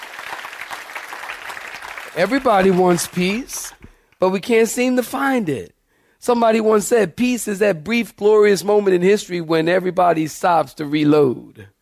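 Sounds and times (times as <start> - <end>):
audience clapping hands: 0.0 - 4.0
speech: 2.1 - 11.8.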